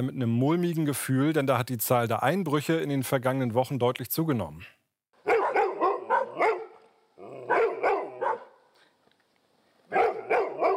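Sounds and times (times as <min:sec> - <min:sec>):
speech: 0:00.0 - 0:04.8
dogs barking: 0:05.2 - 0:08.7, 0:09.9 - 0:10.7.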